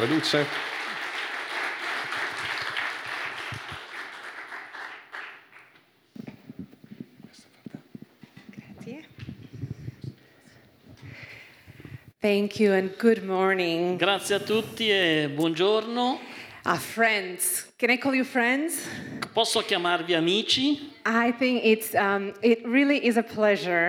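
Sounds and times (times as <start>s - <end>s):
speech: 0.0s - 0.7s, 12.2s - 23.8s
audience applause: 0.0s - 5.8s.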